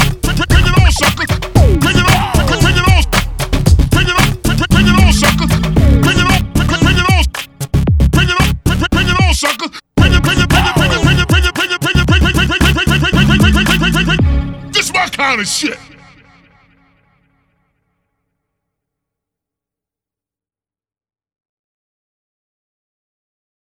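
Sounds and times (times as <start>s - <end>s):
rap music: 0.0s - 15.8s.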